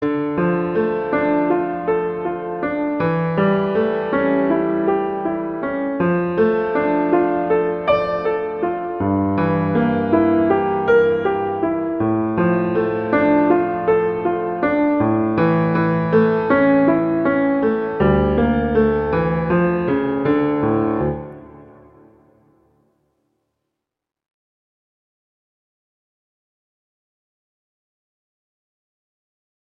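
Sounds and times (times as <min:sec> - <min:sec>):
prelude in D minor: 0:00.0 - 0:22.9.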